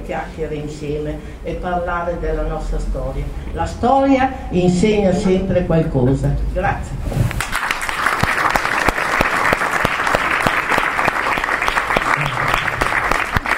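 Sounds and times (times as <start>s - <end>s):
speech: 0.1s - 7.4s
audience applause: 7.4s - 13.5s.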